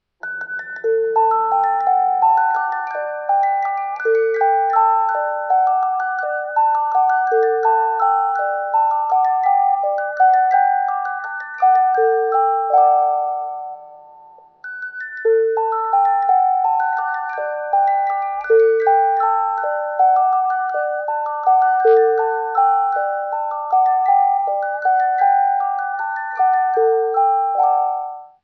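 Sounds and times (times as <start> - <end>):
waltz music: 0.0 - 28.4.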